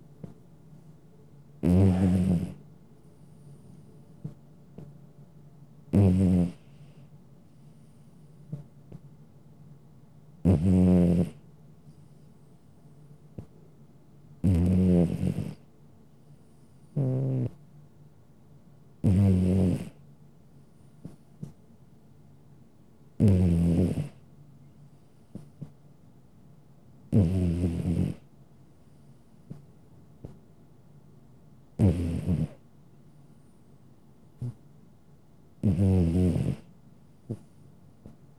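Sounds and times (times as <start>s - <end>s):
domestic cat snoring: 1.6s - 2.6s, 5.9s - 7.0s, 10.4s - 11.4s, 14.4s - 15.6s, 16.9s - 17.6s, 19.0s - 20.0s, 23.2s - 24.2s, 27.1s - 28.2s, 31.8s - 32.6s, 34.4s - 34.6s, 35.6s - 36.7s
small clicks and snuffles: 20.9s - 21.7s, 25.3s - 25.8s, 29.4s - 30.5s, 37.3s - 38.3s.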